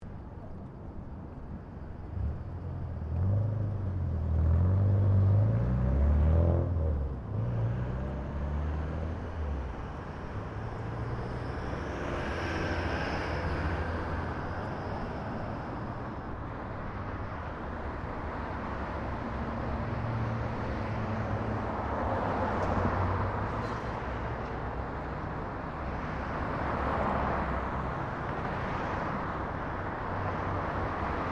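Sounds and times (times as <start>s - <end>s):
general traffic ambience: 0.0s - 31.2s.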